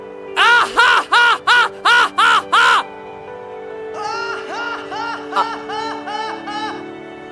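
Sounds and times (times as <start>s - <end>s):
person laughing: 0.4s - 2.8s, 4.0s - 6.8s.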